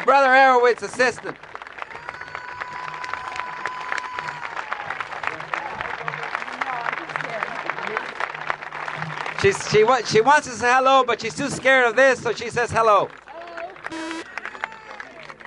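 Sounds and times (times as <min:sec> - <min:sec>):
speech: 0:00.1 - 0:01.5, 0:09.4 - 0:13.2
audience applause: 0:00.5 - 0:10.2, 0:13.1 - 0:15.4.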